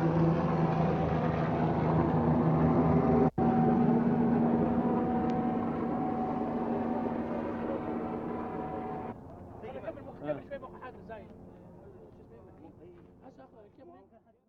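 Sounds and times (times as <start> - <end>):
road ambience in Iraq: 0.0 - 9.2.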